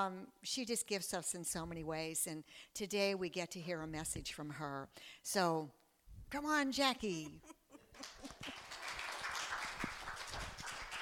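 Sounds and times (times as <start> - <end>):
speech: 0.0 - 8.6
laughter: 7.2 - 8.9
audience applause: 7.9 - 11.0.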